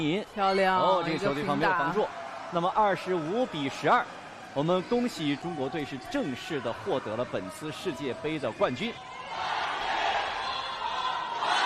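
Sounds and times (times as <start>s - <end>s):
speech: 0.0s - 9.5s
spectators and fans chanting after their team wins the World Cup: 9.0s - 11.6s.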